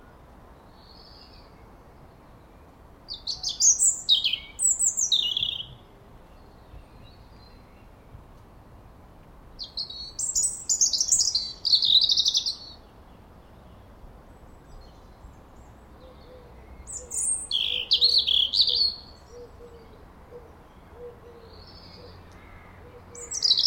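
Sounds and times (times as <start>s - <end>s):
European robin singing: 0.6s - 8.2s, 9.6s - 23.6s.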